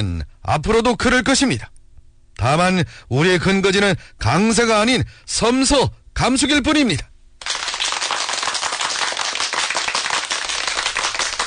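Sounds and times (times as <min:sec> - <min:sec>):
speech: 0:00.0 - 0:01.7, 0:02.4 - 0:07.1
large crowd applauding warmly: 0:07.4 - 0:11.4.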